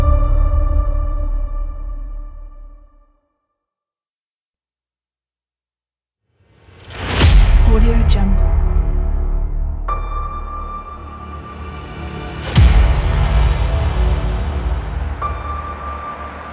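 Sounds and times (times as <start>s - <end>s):
countdown trailer music: 0.0s - 2.9s, 6.8s - 16.5s.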